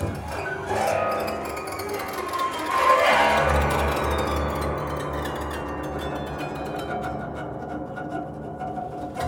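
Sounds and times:
musical swell sting: 0.2 - 9.1.

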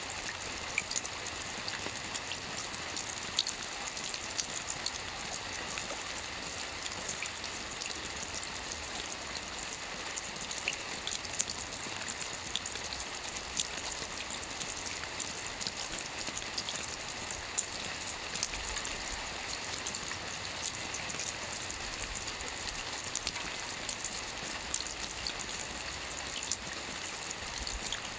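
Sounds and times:
rain water drops: 0.0 - 28.1.

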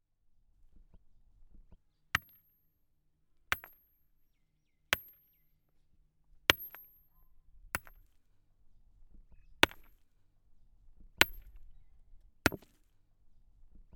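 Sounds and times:
hammer striking stone: 2.2 - 2.5, 3.5 - 3.9, 4.9 - 5.4, 6.5 - 7.2, 7.8 - 8.2, 9.6 - 10.0, 11.2 - 11.7, 12.5 - 12.9.

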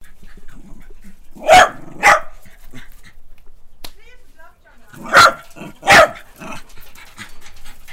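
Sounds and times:
dog barking: 1.4 - 2.4, 5.0 - 6.6.

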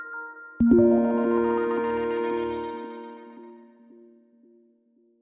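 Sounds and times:
synth stinger: 0.7 - 4.0.

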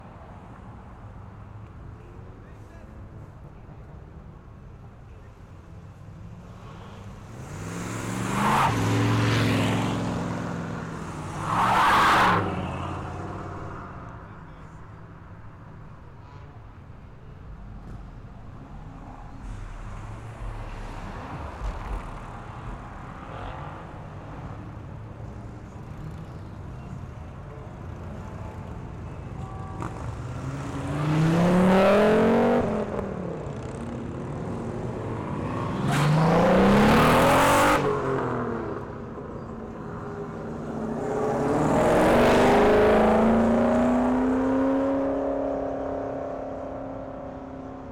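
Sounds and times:
cars accelerating at a car show: 6.3 - 14.5, 17.8 - 26.6, 29.8 - 47.9
car show crowd: 16.4 - 32.0.

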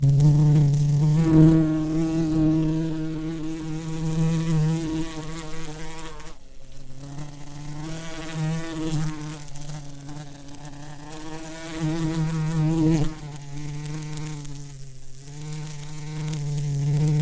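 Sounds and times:
bee buzzing: 0.0 - 17.2.

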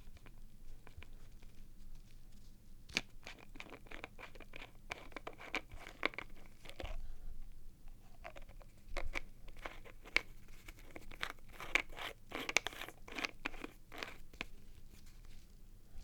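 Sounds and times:
bottle cap twisting: 2.9 - 7.0, 8.2 - 14.6.

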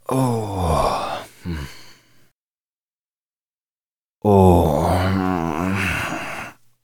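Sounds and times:
man exhaling tiredly: 0.1 - 2.3, 4.9 - 6.6.

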